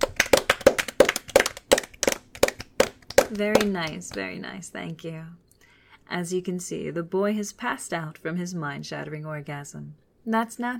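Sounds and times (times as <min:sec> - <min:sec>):
applause: 0:00.0 - 0:04.2
speech: 0:03.3 - 0:05.4, 0:06.1 - 0:10.7.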